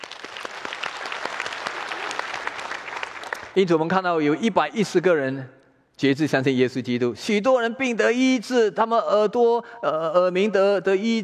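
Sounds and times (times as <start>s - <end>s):
audience applause: 0.0s - 3.6s
speech: 3.6s - 11.2s.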